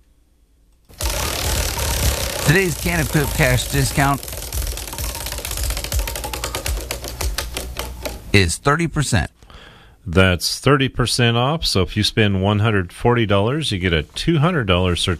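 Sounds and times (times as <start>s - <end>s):
prize wheel spinning and clicking: 0.9s - 8.4s
speech: 2.5s - 4.4s, 8.4s - 9.4s, 10.0s - 15.1s.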